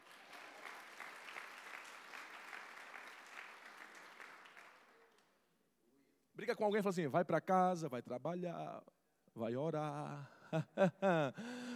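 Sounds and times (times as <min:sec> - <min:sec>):
audience applauding: 0:00.0 - 0:05.3
speech: 0:06.4 - 0:11.7
laughter: 0:10.4 - 0:11.7.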